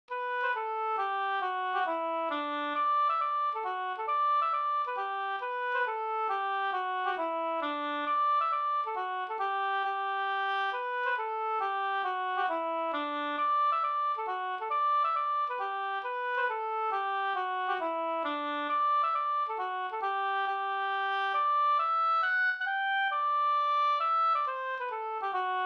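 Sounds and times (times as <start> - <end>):
mazurka: 0.2 - 25.6.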